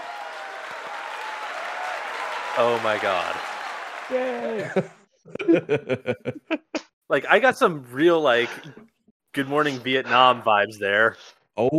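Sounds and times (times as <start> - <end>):
applause welcoming a guest onto a show: 0.0 - 4.9
speech: 2.6 - 3.5, 4.1 - 11.7
laughter: 4.1 - 7.8.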